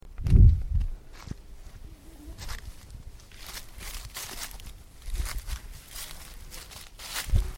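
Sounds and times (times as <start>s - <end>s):
leaves: 0.6s - 7.5s
bee: 1.8s - 2.7s.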